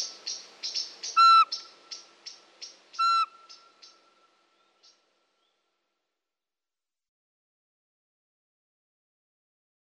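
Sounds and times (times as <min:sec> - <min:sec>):
soft high bird chirps: 0:00.0 - 0:05.6
Eurasian pygmy owl whistled note: 0:01.2 - 0:01.5, 0:03.0 - 0:03.4.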